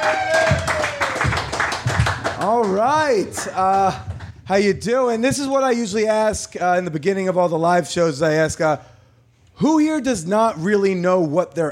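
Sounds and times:
live audience applause: 0.0 - 4.4
speech: 2.7 - 8.9, 9.6 - 11.6.

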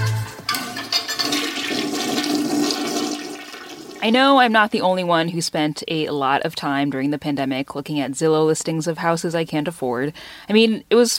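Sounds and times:
toilet flushing: 0.6 - 4.1
speech: 4.0 - 11.1.

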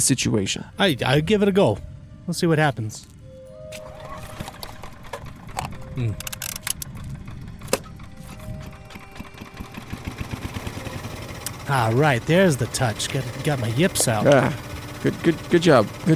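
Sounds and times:
speech: 0.0 - 3.9, 6.0 - 6.3, 11.7 - 16.1
generator starter cord pulled: 4.4 - 16.1.

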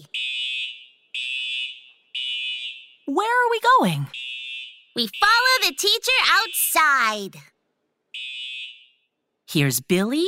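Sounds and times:
school fire alarm ringing: 0.1 - 3.0, 4.1 - 6.9, 8.2 - 9.1
speech: 3.1 - 4.2, 5.0 - 7.5, 9.5 - 10.2.

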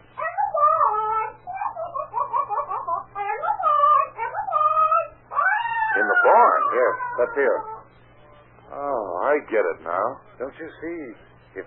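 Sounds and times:
faint steady hum: 0.0 - 11.6
parrot squawking and chattering speech-like calls: 0.2 - 7.9
speech: 7.2 - 7.8, 8.8 - 11.6.

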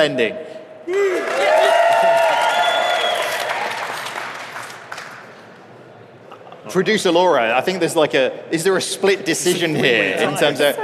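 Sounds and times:
speech: 0.0 - 1.6, 6.6 - 10.8
crowd cheering and whooping: 0.9 - 4.2
audience applause: 0.9 - 5.4.

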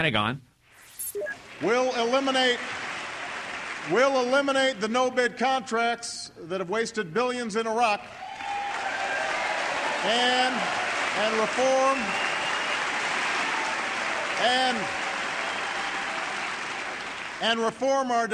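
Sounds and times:
speech: 0.0 - 0.5, 1.1 - 2.8, 3.8 - 8.3, 10.0 - 12.3, 14.4 - 15.0, 17.4 - 18.3
hesitant applause from an audience at a political speech: 1.4 - 4.8, 8.0 - 17.7.

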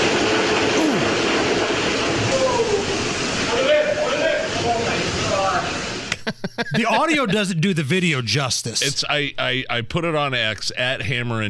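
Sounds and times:
beer blasting from tank under high pressure: 0.0 - 6.1
laughter: 6.0 - 7.9
speech: 6.4 - 11.4.

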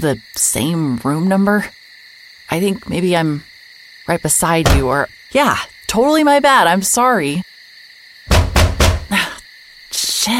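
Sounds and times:
speech: 0.0 - 1.8, 2.5 - 3.5, 4.1 - 7.5
banging on a wall: 4.6 - 5.0, 8.3 - 9.1.

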